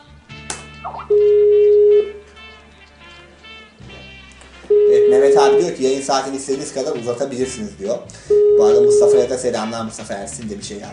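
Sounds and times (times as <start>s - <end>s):
telephone call ringing out: 1.1s - 2.2s, 4.7s - 5.8s, 8.3s - 9.2s
speech: 5.5s - 10.9s.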